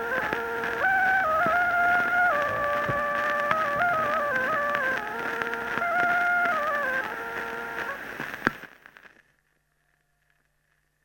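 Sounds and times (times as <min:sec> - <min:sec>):
torupill bagpipe playing folk polka: 0:00.0 - 0:08.1.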